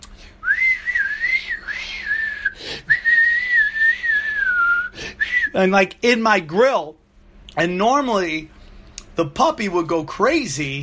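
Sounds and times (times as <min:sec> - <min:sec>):
person whistling a wavering melody imitating a flute: 0:00.4 - 0:05.6
speech: 0:05.6 - 0:07.0, 0:07.6 - 0:08.6, 0:09.2 - 0:10.8.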